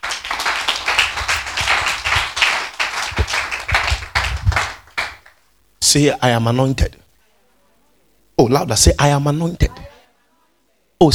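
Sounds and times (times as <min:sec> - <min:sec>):
audience clapping hands: 0:00.0 - 0:05.4
speech: 0:05.9 - 0:07.0, 0:08.4 - 0:09.9, 0:11.0 - 0:11.1.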